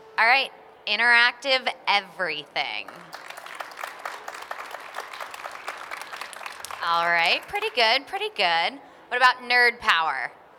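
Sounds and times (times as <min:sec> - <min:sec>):
speech: 0:00.2 - 0:03.3, 0:06.8 - 0:10.4
faint audience applause: 0:02.9 - 0:07.9
one loud clapper clapping quickly: 0:02.9 - 0:07.9.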